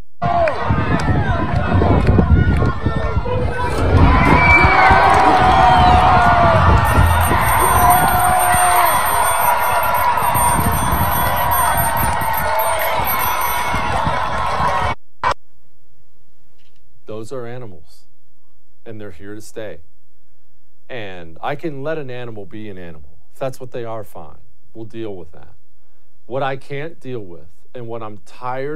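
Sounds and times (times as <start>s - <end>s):
large crowd cheering in a played video: 0.2s - 15.0s
speech: 19.1s - 19.9s, 21.5s - 25.6s, 26.3s - 28.7s.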